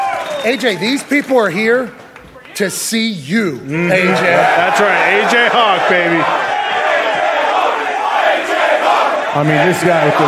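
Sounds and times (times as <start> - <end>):
speech: 0.4 - 2.0, 2.6 - 6.5, 9.3 - 10.2
live crowd chanting a name: 3.8 - 10.2.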